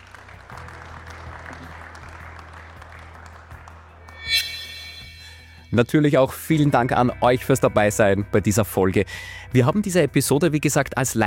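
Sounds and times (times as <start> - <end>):
live audience applause: 0.0 - 4.2
bright ringing tone: 4.1 - 5.9
speech: 5.7 - 11.2.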